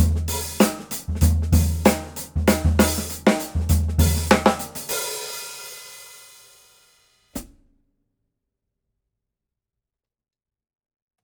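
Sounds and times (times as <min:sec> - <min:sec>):
hi-hat: 0:00.0 - 0:06.4.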